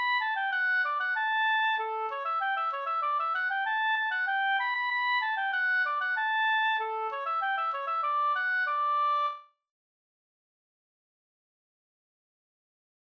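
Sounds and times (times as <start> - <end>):
polka music: 0.0 - 9.4.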